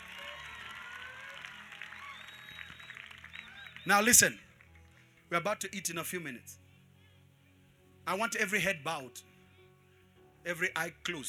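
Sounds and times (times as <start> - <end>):
audience clapping and shouting: 0.0 - 4.9
speech: 3.9 - 4.4, 5.3 - 6.6, 8.0 - 9.3, 10.4 - 11.2.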